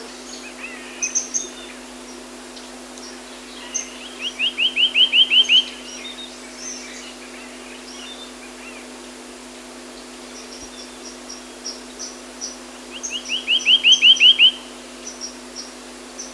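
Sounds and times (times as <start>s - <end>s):
Reunion cuckooshrike calling: 0.2s - 2.2s, 3.0s - 8.9s, 10.0s - 16.3s.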